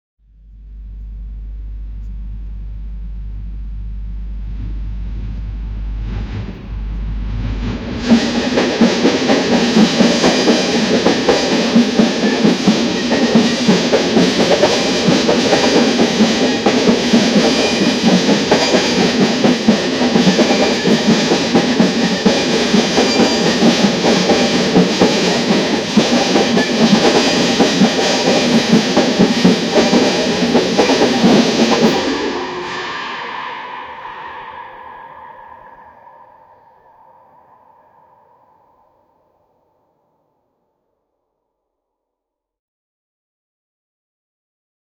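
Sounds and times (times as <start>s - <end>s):
UK train: 5.2s - 39.3s.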